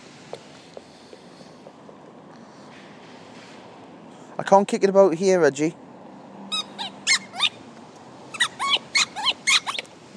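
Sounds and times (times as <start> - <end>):
speech: 4.4 - 5.8
squeaky rubber dog toy ball squeaking: 6.5 - 7.6, 8.3 - 9.9.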